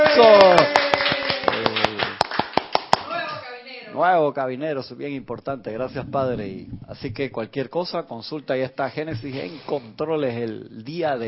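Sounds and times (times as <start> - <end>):
sharp hand claps: 0.0 - 3.3
speech: 0.2 - 0.8, 4.0 - 11.2.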